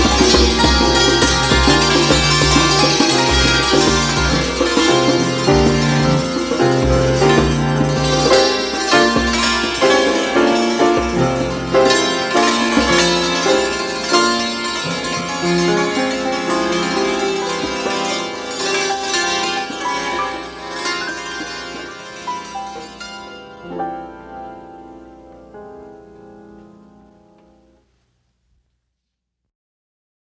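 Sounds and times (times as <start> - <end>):
drum: 0.0 - 13.9
santur: 0.0 - 27.4
piano: 0.0 - 27.9.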